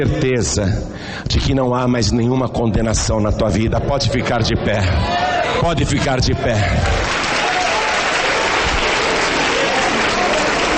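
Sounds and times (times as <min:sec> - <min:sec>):
speech: 0:00.0 - 0:07.1
audience applauding: 0:06.5 - 0:10.7.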